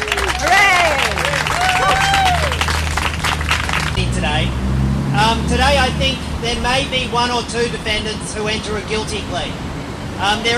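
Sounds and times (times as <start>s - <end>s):
audience applause: 0.0s - 4.0s
speech: 5.3s - 10.5s.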